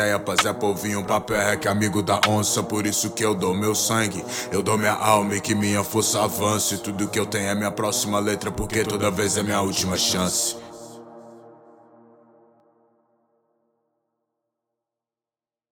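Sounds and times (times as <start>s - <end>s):
trap rap music: 0.0s - 11.1s.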